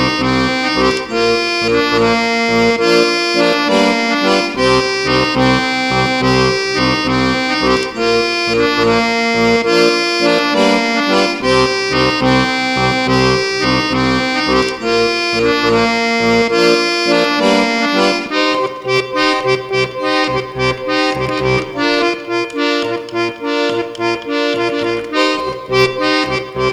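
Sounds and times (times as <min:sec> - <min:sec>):
accordion: 0:00.0 - 0:26.7.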